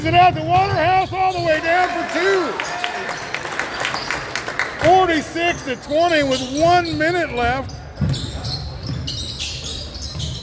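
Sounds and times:
speech: 0.0 - 2.8, 4.8 - 8.2
sneakers squeaking on basketball court: 0.0 - 4.3, 5.4 - 10.4.

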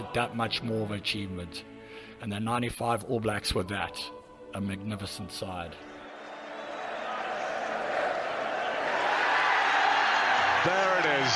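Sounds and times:
speech: 0.1 - 5.9
huge stadium crowd cheering: 5.8 - 11.3.

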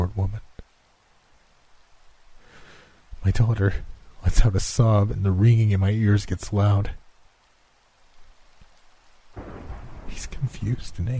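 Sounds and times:
rain falling: 0.0 - 11.1
speech: 3.2 - 7.0, 10.6 - 11.1
thunder: 9.4 - 10.5.

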